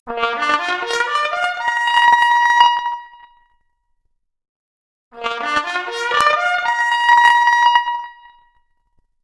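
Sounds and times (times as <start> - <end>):
trumpet arpeggio: 0.1 - 2.9, 5.2 - 8.2.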